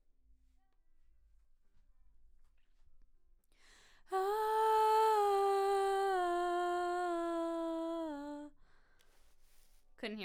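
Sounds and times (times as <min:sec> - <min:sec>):
background vocals: 0:04.1 - 0:08.6.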